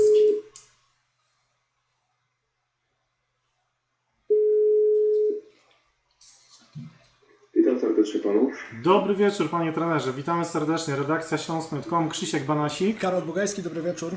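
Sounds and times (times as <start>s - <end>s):
telephone ringback tone on an outgoing call: 0.0s - 0.5s, 4.3s - 5.4s
speech: 8.0s - 14.1s.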